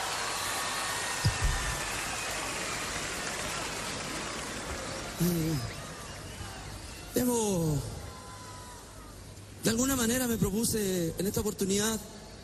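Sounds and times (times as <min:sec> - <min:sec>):
audience applause: 0:00.0 - 0:07.1
speech: 0:05.2 - 0:05.7, 0:09.8 - 0:12.2.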